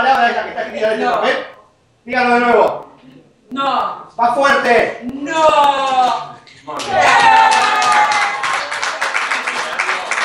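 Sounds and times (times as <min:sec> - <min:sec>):
speech: 0:00.2 - 0:02.9, 0:03.5 - 0:08.1
audience applause at a hall inauguration: 0:06.8 - 0:10.2.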